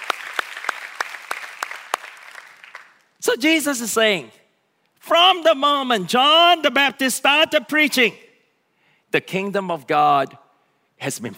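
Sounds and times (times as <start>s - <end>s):
crowd clapping in a steady rhythm: 0.0s - 3.2s
scattered applause: 0.0s - 3.2s
speech: 3.2s - 4.4s, 5.1s - 8.2s, 9.1s - 10.4s, 11.0s - 11.3s.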